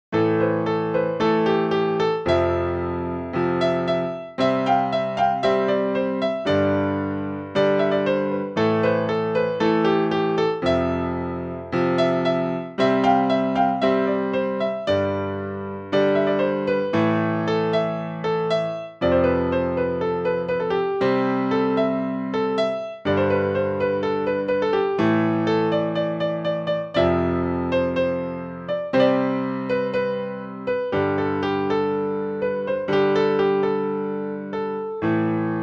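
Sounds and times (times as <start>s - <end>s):
Tamil song keyboard cover background music: 0.2s - 35.6s.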